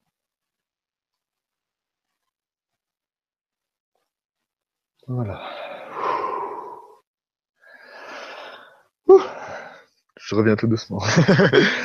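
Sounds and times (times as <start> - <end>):
speech: 5.0 - 5.6, 10.3 - 11.8
person yawning: 6.0 - 7.0, 9.1 - 9.4
laughter: 11.0 - 11.8.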